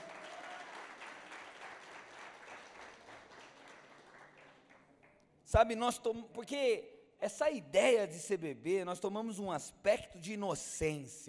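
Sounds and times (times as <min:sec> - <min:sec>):
audience applauding: 0:00.0 - 0:05.2
speech: 0:05.5 - 0:11.2.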